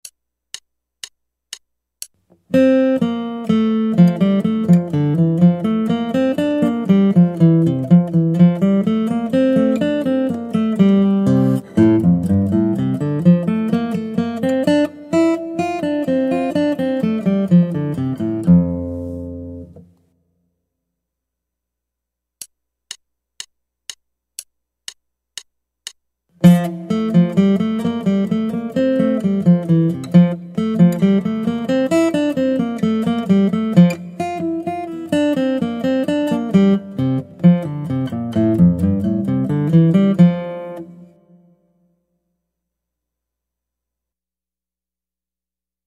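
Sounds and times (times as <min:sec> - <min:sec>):
guitar: 0:02.4 - 0:20.0, 0:26.4 - 0:41.8.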